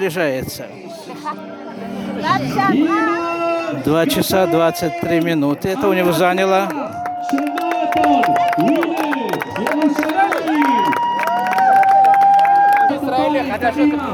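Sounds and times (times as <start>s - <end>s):
speech: 0.0s - 10.4s, 13.3s - 14.1s
people clapping: 6.1s - 13.2s.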